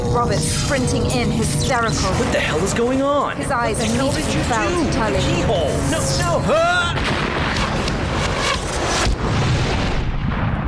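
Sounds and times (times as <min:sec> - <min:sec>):
speech: 0:00.1 - 0:07.2
explosion blast: 0:06.8 - 0:10.6.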